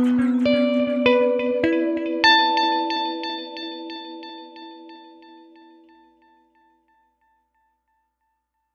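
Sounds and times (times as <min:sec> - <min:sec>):
instrument tone modulated with an expression pedal: 0:00.0 - 0:06.9.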